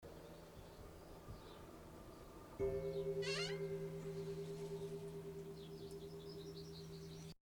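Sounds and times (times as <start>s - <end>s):
bell ringing: 2.6s - 7.4s.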